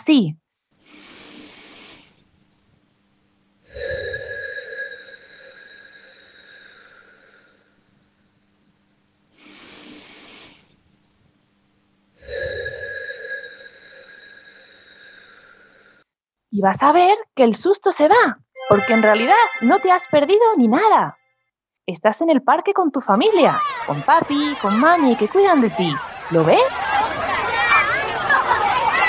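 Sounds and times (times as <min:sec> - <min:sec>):
speech: 0:00.0 - 0:00.4, 0:16.6 - 0:21.2, 0:21.9 - 0:26.9
deep breathing in through the nose: 0:00.8 - 0:02.3, 0:03.7 - 0:07.8, 0:09.3 - 0:10.8, 0:12.2 - 0:16.1
laughter: 0:23.2 - 0:29.0.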